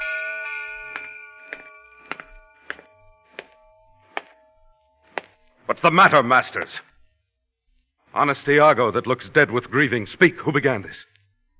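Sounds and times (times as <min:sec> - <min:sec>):
alarm bell ringing: 0:00.0 - 0:07.1
speech: 0:05.7 - 0:06.9, 0:08.2 - 0:11.1.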